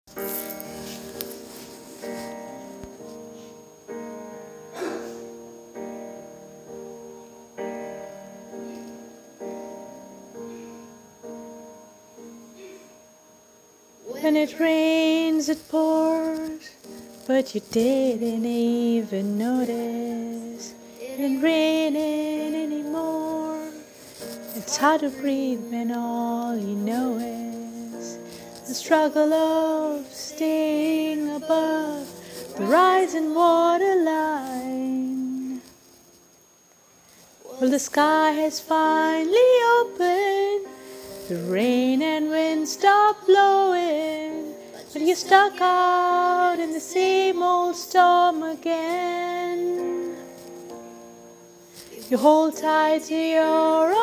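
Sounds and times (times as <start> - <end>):
person singing: 14.0 - 35.8, 37.4 - 50.4, 51.8 - 54.0.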